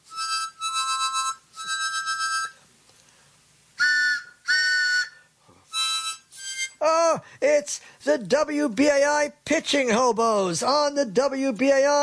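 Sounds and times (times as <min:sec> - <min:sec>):
harmonica playing: 0:00.0 - 0:02.6, 0:03.8 - 0:07.2
speech: 0:07.5 - 0:12.0.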